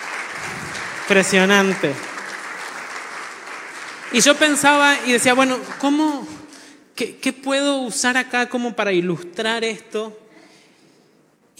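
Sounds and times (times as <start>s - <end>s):
audience applause: 0.0s - 6.4s
speech: 1.1s - 2.1s, 4.1s - 6.4s, 7.0s - 10.2s.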